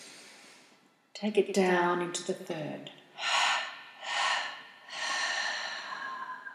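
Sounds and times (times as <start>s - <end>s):
slow deep breaths during a guided breathing exercise: 0.0s - 1.0s, 3.2s - 6.5s
speech: 1.2s - 3.0s.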